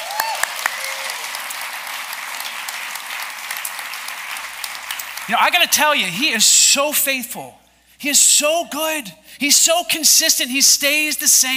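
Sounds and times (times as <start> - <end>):
audience applause: 0.0 - 6.0
speech: 5.3 - 11.5.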